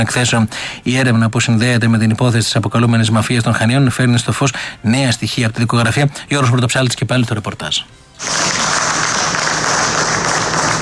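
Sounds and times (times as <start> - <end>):
speech: 0.0 - 8.6
relatives and friends applauding: 8.1 - 10.8.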